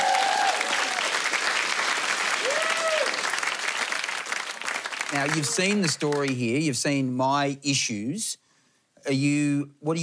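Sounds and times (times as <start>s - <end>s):
audience applause welcoming a gamer guest onto a stage: 0.0s - 6.8s
speech: 5.1s - 8.4s, 9.1s - 10.0s.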